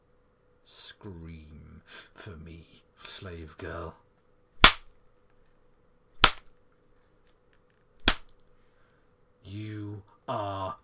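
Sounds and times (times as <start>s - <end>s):
speech: 0.7s - 4.0s, 9.5s - 10.8s
whip cracks: 4.6s - 4.9s, 6.2s - 6.5s, 8.0s - 8.3s.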